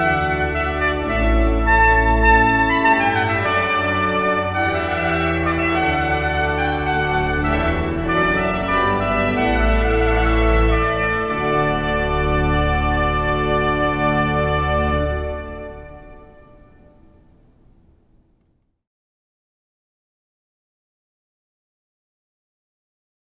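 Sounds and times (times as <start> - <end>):
trumpet piece: 0.0 - 17.8.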